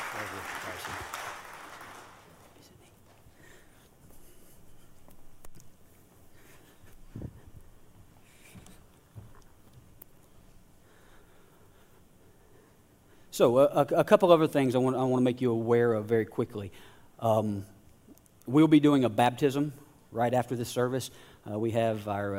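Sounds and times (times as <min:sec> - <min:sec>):
church congregation applauding at Gateway Church: 0:00.0 - 0:02.6
speech: 0:00.2 - 0:01.2, 0:13.4 - 0:17.7, 0:18.5 - 0:22.3.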